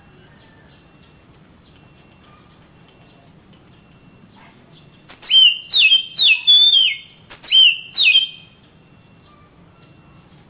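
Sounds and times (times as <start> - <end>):
Oriental magpie-robin whistling song: 5.1 - 8.6.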